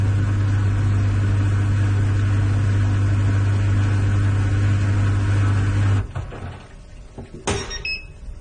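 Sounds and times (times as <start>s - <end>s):
small European clothes dryer motor hum: 0.0s - 8.3s
clothes dryer high electronic beep: 7.6s - 8.2s.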